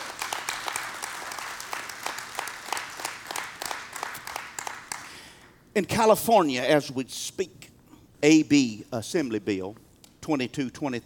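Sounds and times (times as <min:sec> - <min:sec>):
audience applauding in praise: 0:00.0 - 0:05.4
speech: 0:05.8 - 0:07.6, 0:08.2 - 0:11.0.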